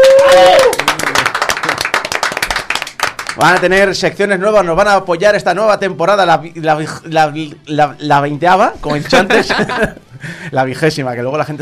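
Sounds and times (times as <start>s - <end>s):
applause: 0.0s - 3.9s
speech: 3.4s - 11.6s
laughter: 8.9s - 10.4s.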